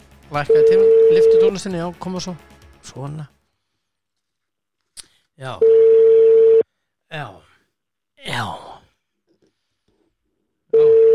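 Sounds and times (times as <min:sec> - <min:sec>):
speech: 0:00.3 - 0:03.4, 0:05.4 - 0:05.8, 0:07.1 - 0:07.5, 0:08.3 - 0:08.7
telephone busy signal on an unanswered call: 0:00.6 - 0:01.4, 0:05.6 - 0:06.6, 0:10.8 - 0:11.1.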